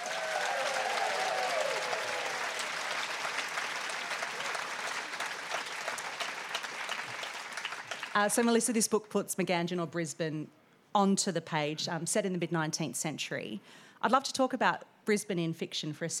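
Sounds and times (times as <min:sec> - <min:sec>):
rising whoop: 0:00.0 - 0:02.5
audience clapping: 0:00.0 - 0:08.5
speech: 0:08.2 - 0:16.1.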